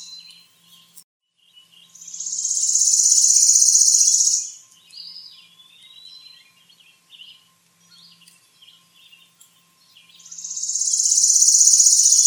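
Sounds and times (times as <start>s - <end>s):
bird song with buzzy trills: 0.0s - 12.2s.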